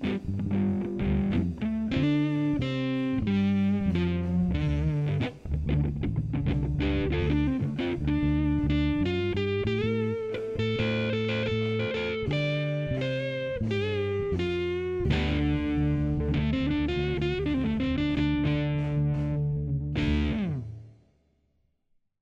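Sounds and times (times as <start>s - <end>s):
rock style blues music: 0.0s - 20.6s.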